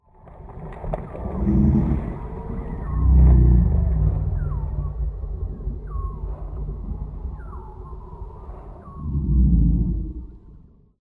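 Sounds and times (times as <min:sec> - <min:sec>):
Tyrannosaurus dinosaur voice: 0:01.3 - 0:05.5, 0:08.8 - 0:10.3.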